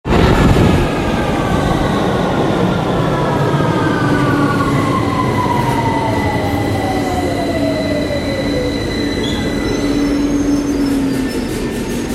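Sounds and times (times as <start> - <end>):
London Underground train arriving: 0.1 - 12.1
London Underground train doors opening: 4.1 - 12.1.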